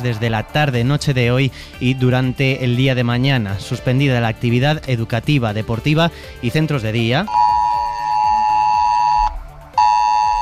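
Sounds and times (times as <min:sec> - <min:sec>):
speech: 0:00.0 - 0:07.5
emergency alert tone on mobile phones: 0:07.3 - 0:10.4.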